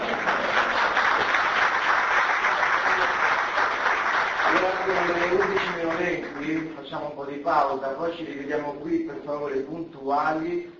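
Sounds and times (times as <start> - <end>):
audience applause: 0.0 - 6.7
speech: 6.2 - 10.7.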